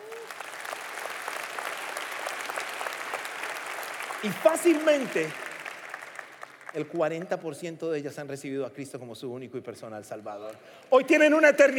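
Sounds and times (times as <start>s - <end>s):
audience applause: 0.0s - 7.1s
speech: 4.2s - 5.4s, 6.8s - 11.7s.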